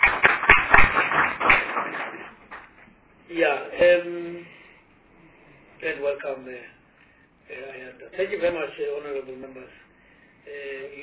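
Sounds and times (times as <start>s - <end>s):
round of applause: 0.0s - 2.9s
speech: 3.3s - 4.5s, 5.8s - 6.8s, 7.5s - 9.8s, 10.5s - 11.0s.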